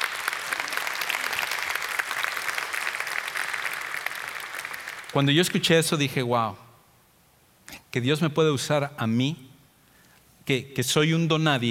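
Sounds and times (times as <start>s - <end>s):
audience applause: 0.0s - 5.2s
speech: 5.2s - 6.6s, 7.9s - 9.4s, 10.4s - 11.6s.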